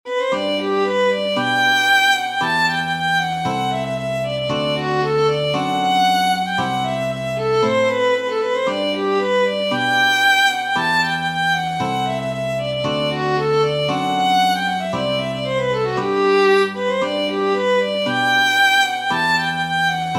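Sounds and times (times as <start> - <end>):
polkett music: 0.1 - 20.1.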